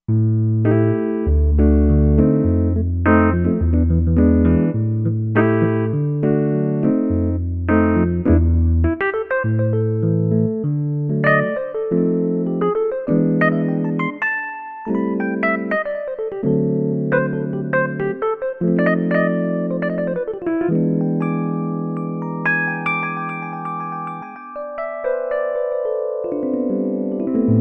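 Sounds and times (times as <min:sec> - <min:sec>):
synth piano: 0:00.1 - 0:27.5.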